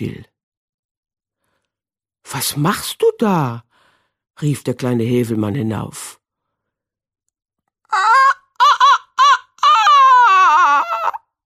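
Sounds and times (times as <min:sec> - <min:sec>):
speech: 0:00.0 - 0:00.3, 0:02.2 - 0:03.7, 0:04.4 - 0:06.2
voice imitating a rooster crowing: 0:07.9 - 0:11.2.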